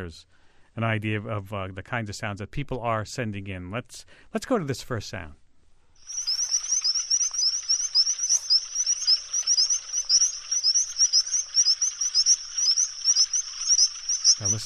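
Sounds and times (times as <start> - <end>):
speech: 0.0 - 5.4, 14.4 - 14.6
crickets chirping: 6.0 - 14.6
frogs calling: 6.0 - 14.6.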